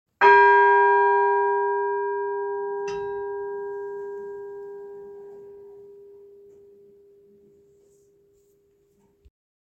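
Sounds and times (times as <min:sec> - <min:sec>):
bells of Sussex: 0:00.2 - 0:07.4.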